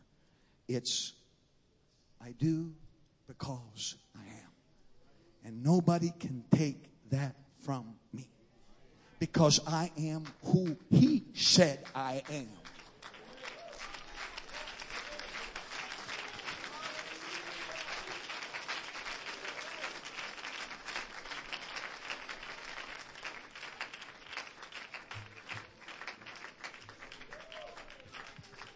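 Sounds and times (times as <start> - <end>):
speech: 0.7 - 1.2, 2.2 - 4.5, 5.4 - 8.4, 9.2 - 12.6
audience applause: 11.6 - 28.7
faint voices and cheers: 13.1 - 23.9, 25.0 - 28.7.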